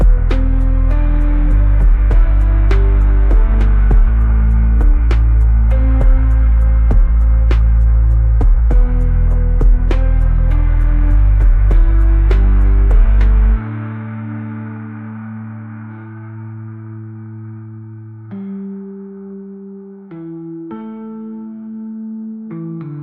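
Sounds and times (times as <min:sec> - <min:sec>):
misty atmospheric echoes: 0:00.0 - 0:18.3.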